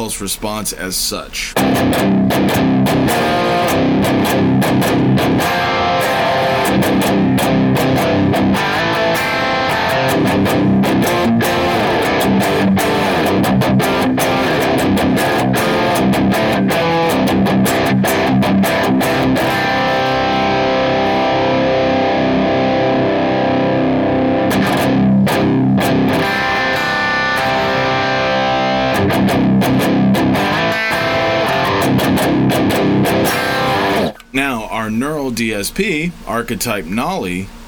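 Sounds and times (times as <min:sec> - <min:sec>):
speech: 0:00.0 - 0:08.8, 0:34.4 - 0:37.6
distorted guitar through KT88 tube amp: 0:01.6 - 0:34.6.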